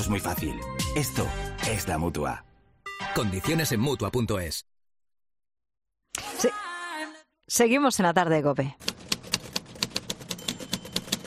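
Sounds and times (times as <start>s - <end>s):
speech: 0.0s - 2.5s, 3.1s - 4.7s, 7.5s - 8.9s
rapid typing on keys: 8.8s - 11.2s.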